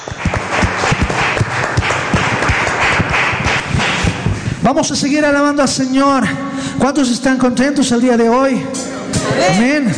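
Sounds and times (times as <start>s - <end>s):
audience applause: 0.0s - 4.1s
speech: 4.7s - 9.9s.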